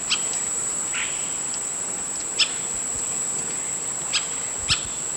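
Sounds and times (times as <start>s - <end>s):
little woodpecker calling: 0.1s - 1.3s, 2.3s - 2.7s, 4.1s - 5.0s.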